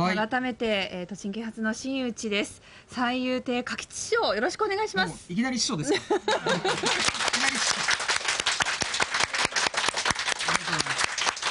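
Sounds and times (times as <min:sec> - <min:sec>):
speech: 0:00.1 - 0:07.8
laughter: 0:05.9 - 0:07.6, 0:10.4 - 0:11.1
audience applause: 0:06.6 - 0:11.4.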